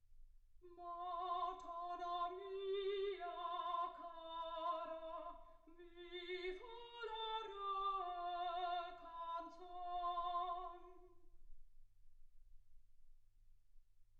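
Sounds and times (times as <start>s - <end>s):
soprano singing: 0.6s - 11.2s.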